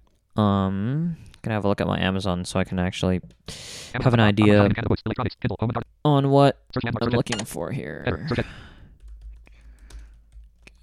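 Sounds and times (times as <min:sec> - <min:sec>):
speech: 0:00.4 - 0:08.7
typing on a computer keyboard: 0:08.9 - 0:10.8.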